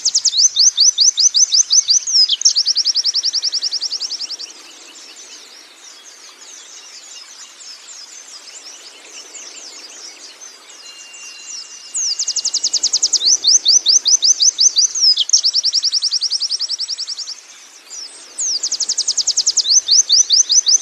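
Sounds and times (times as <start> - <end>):
canary song with fast high trills and rattling trill: 0.0 - 4.9, 9.9 - 20.8.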